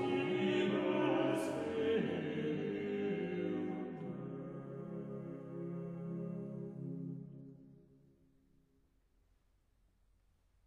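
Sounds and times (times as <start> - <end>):
chorale sung by four voices: 0.0 - 6.5.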